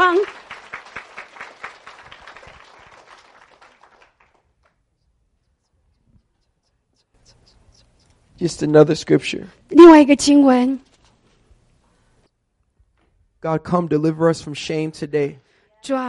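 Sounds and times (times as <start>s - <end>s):
audience clapping: 0.0s - 4.8s
speech: 8.4s - 10.9s, 13.4s - 16.0s.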